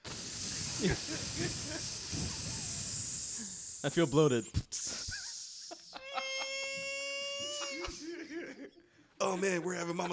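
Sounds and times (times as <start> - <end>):
voice imitating air hissing from a tube: 0.0 - 8.0
speech: 0.8 - 2.7, 3.8 - 4.8, 9.2 - 10.1
laughter: 5.7 - 10.1.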